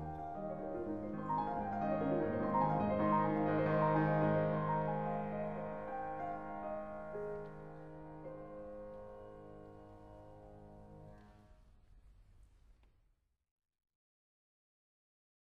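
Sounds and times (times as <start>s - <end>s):
piano sonata finale presto: 0.0s - 11.7s.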